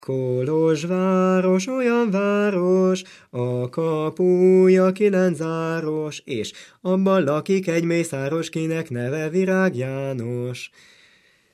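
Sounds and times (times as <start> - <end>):
Hungarian folk song: 0.0 - 11.5.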